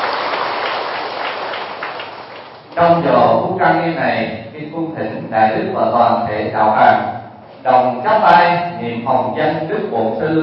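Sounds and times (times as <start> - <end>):
applause for a visiting Buddhist monk and preacher in Bến Tre: 0.0 - 2.8
speech: 2.8 - 10.4.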